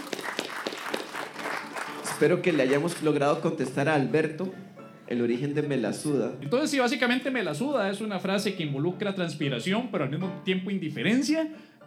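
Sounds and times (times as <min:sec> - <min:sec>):
applause: 0:00.0 - 0:03.8
speech: 0:02.2 - 0:11.8.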